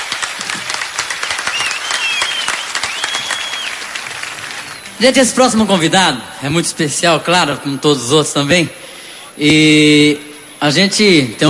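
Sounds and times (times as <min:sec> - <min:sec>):
audience applause: 0:00.0 - 0:05.5
high whistles: 0:01.2 - 0:05.0
speech: 0:05.0 - 0:11.4.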